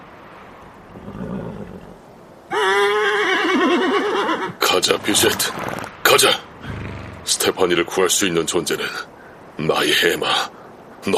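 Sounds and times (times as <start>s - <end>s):
horse neighing: 1.0s - 6.0s, 6.6s - 7.4s
speech: 4.8s - 6.5s, 7.3s - 11.1s.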